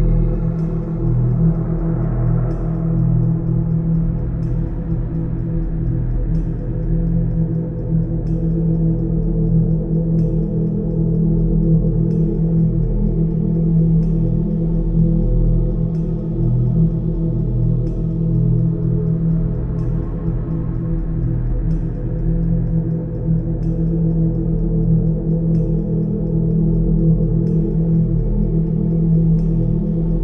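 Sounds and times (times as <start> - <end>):
ominous horror ambiance background music: 0.0 - 30.2.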